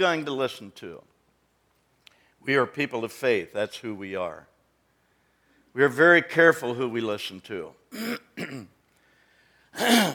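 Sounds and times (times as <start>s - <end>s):
speech: 0.0s - 1.1s, 2.4s - 4.5s, 5.8s - 8.8s, 9.7s - 10.1s
throat clearing: 7.9s - 8.8s, 9.8s - 10.1s.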